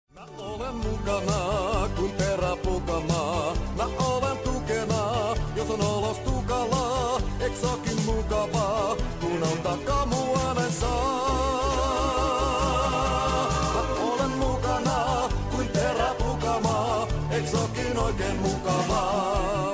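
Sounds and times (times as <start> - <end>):
polka music: 0.2 - 19.7.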